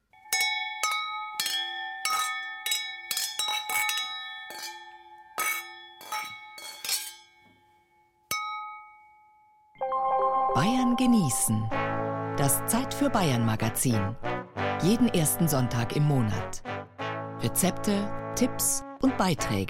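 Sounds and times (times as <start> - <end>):
wine glasses clinking: 0.2 - 9.5
speech: 10.6 - 16.6, 17.4 - 19.6.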